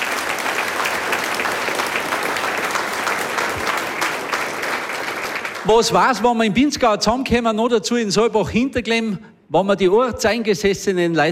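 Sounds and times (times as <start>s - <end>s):
audience applause: 0.0s - 6.2s
speech: 5.7s - 11.3s.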